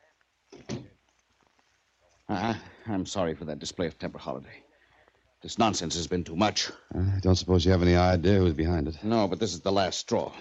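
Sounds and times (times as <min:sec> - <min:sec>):
door closing with a thud: 0:00.6 - 0:00.9
speech: 0:02.3 - 0:04.7, 0:05.4 - 0:10.3.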